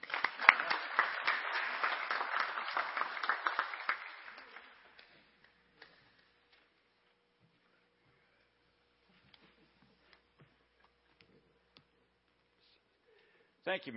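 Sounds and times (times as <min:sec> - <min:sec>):
Community Baptist Church congregation clapping to welcome a guest reverend: 0:00.0 - 0:06.3
speech: 0:13.7 - 0:13.9.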